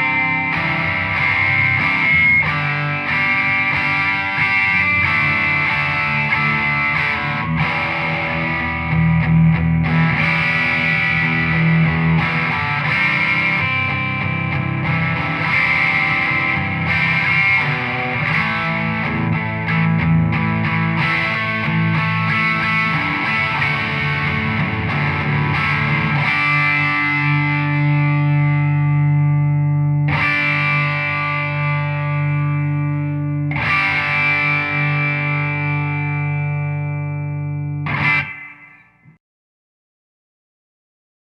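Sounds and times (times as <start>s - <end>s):
Telecaster electric guitar chiming on neck and bridge pickups: 0.0s - 39.2s.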